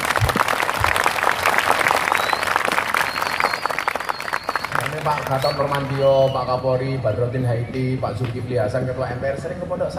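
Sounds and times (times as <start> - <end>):
audience at a speech applauding for NU: 0.0 - 6.4
speech: 5.0 - 9.9.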